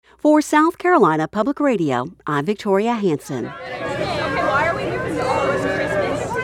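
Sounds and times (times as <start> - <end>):
speech: 0.2 - 3.8
families chatting on a dock outside the Charleston Maritime Center: 2.6 - 6.4.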